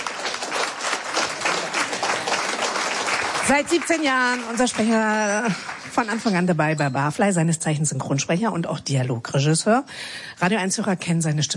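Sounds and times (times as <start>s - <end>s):
audience clapping: 0.0s - 6.6s
speech: 3.5s - 11.5s.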